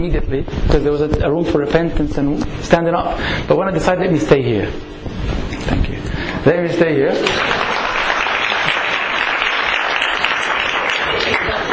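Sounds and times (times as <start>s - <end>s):
speech: 0.0s - 7.6s
audience clapping: 7.2s - 11.7s.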